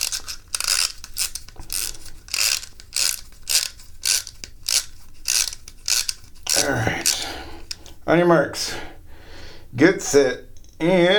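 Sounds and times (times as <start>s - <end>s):
clockwork toy boat being wound with ratcheting clicks: 0.0s - 7.8s
speech: 6.6s - 6.9s, 8.1s - 8.9s, 9.8s - 11.1s.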